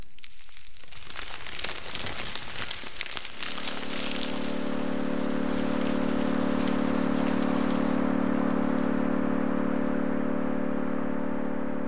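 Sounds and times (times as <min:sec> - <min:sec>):
dense grainy crackling in a generative ambient piece: 0:00.0 - 0:09.7
sustained low chord in a generative ambient piece: 0:03.6 - 0:11.8.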